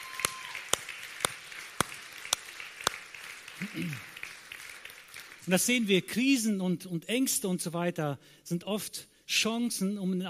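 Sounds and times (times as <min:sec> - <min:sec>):
audience applause: 0:00.0 - 0:05.9
speech: 0:03.6 - 0:04.1, 0:05.5 - 0:10.2.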